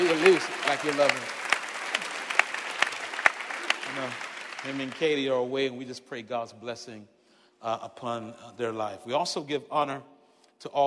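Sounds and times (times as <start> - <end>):
audience clapping hands: 0.0 - 5.6
speech: 0.2 - 1.4, 4.0 - 10.8.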